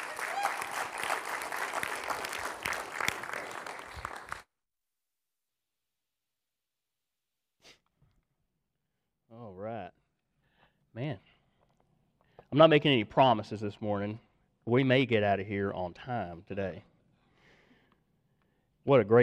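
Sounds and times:
congregation applauding at a morning church service: 0.0s - 4.5s
speech: 12.6s - 16.9s, 18.8s - 19.2s.

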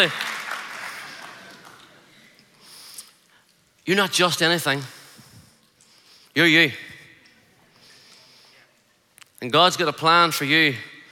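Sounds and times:
speech: 0.0s - 0.2s, 3.9s - 5.0s, 6.4s - 6.9s, 9.4s - 10.9s
audience applauding: 0.0s - 2.1s.

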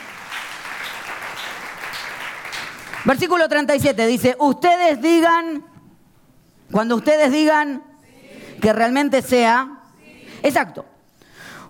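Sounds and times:
audience applause: 0.0s - 3.1s
speech: 3.0s - 5.7s, 6.7s - 7.9s, 8.6s - 9.8s, 10.4s - 10.9s.

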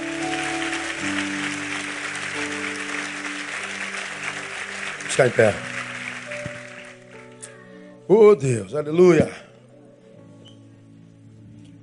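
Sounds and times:
audience applause: 0.0s - 7.4s
sustained organ or keyboard chords: 0.0s - 7.4s
speech: 5.2s - 5.7s, 8.1s - 9.4s.

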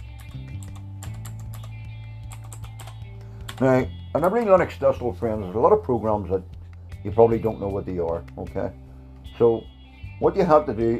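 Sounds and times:
password typed on a computer keyboard: 0.0s - 3.6s
speech: 3.6s - 8.8s, 9.4s - 10.9s.

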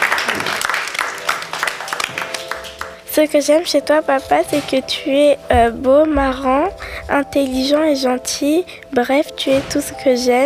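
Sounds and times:
group applause: 0.0s - 3.1s
speech: 3.2s - 10.4s.

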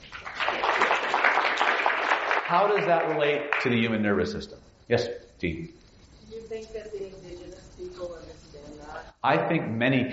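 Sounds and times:
audience applause: 0.0s - 3.8s
speech: 2.5s - 5.8s, 6.5s - 10.1s.

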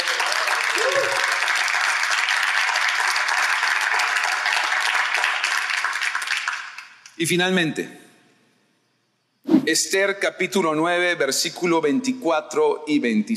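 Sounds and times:
audience applause: 0.0s - 7.0s
person whooping: 0.7s - 1.4s
speech: 7.2s - 8.0s, 9.6s - 13.3s.

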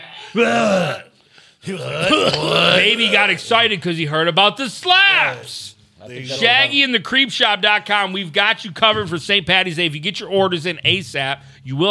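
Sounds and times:
person retching: 0.3s - 3.5s
speech: 0.3s - 11.8s.

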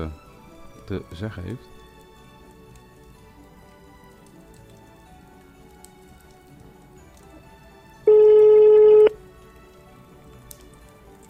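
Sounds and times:
speech: 0.0s - 0.2s, 0.9s - 1.8s
phone call ringing tone on the line: 8.1s - 9.2s.

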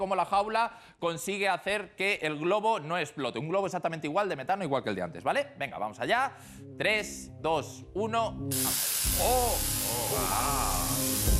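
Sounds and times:
speech: 0.0s - 11.3s
Tesla coil electric arc crackling: 8.5s - 11.3s.

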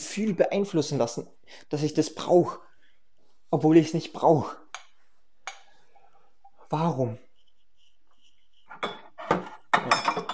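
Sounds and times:
speech: 0.2s - 2.7s, 3.5s - 4.6s, 6.7s - 7.2s
ceramic and glass dishes clinking while unloading a dishwasher: 8.7s - 10.3s.

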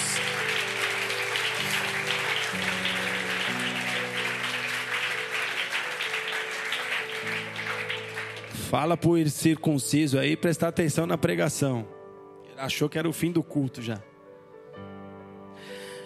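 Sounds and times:
audience applause: 0.0s - 8.8s
speech: 8.7s - 12.0s, 12.6s - 14.1s.

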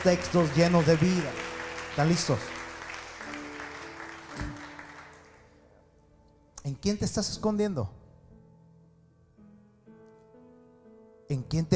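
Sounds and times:
speech: 0.0s - 2.6s, 6.7s - 8.0s, 11.3s - 11.7s
crowd clapping loudly: 0.0s - 5.6s.

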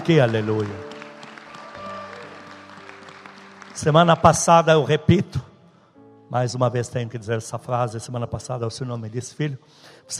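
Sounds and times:
speech: 0.0s - 0.9s, 3.8s - 5.5s, 6.3s - 10.1s
audience applauding: 0.0s - 4.9s.

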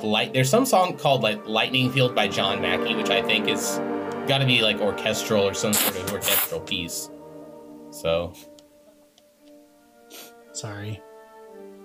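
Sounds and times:
speech: 0.0s - 7.2s, 7.9s - 8.5s, 10.6s - 11.1s
person blowing nose: 5.7s - 6.6s, 10.0s - 10.5s.

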